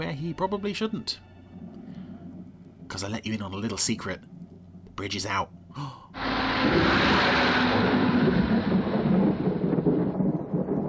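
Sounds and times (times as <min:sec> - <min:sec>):
speech: 0:00.1 - 0:01.3, 0:03.0 - 0:04.3, 0:05.0 - 0:06.0, 0:06.6 - 0:07.6
storm: 0:06.2 - 0:10.8.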